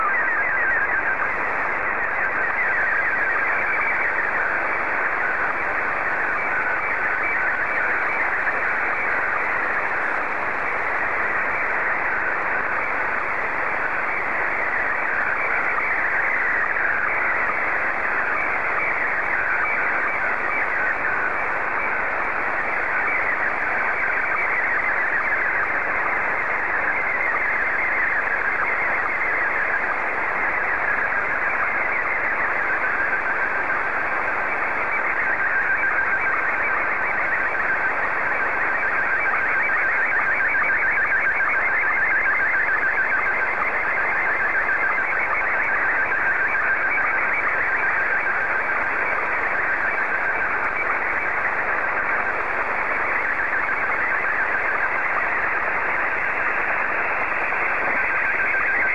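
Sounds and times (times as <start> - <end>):
SSTV signal: 0.0 - 58.9.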